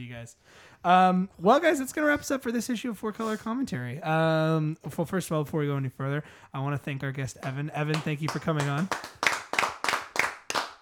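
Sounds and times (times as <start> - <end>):
speech: 0.0 - 9.2
hand clapping: 7.4 - 10.8.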